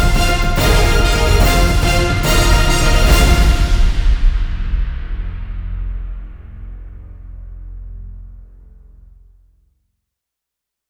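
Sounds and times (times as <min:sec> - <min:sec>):
trailer music without choir: 0:00.0 - 0:06.8.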